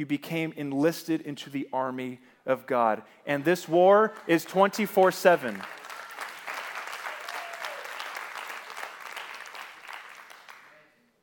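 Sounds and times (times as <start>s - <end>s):
speech: 0.0s - 5.8s
crowd applauding: 3.3s - 10.9s.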